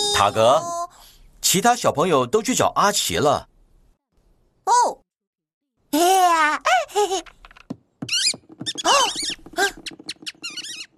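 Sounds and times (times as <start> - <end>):
speech: 0.2 - 0.8, 1.4 - 3.5, 4.6 - 5.0, 6.0 - 7.4, 8.8 - 10.0
high quick squeaks: 8.0 - 10.9.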